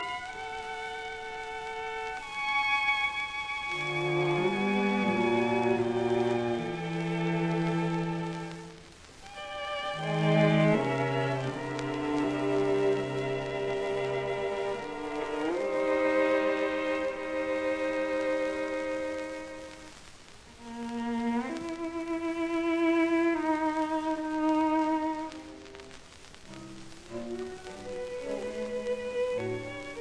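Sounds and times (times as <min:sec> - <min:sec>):
string quartet playing an adagio: 0:00.0 - 0:19.8, 0:20.6 - 0:25.4, 0:26.5 - 0:29.9.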